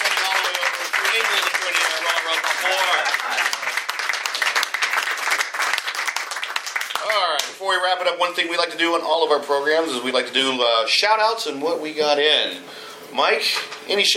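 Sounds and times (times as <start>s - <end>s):
audience applause: 0.0s - 7.5s
speech: 7.6s - 14.1s.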